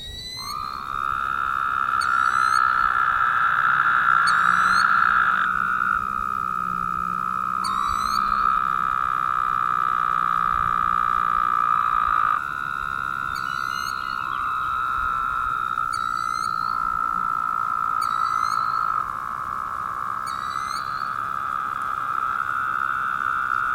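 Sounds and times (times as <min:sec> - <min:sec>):
Woodhouse's toad chorus of buzzy trills: 0:00.0 - 0:23.7.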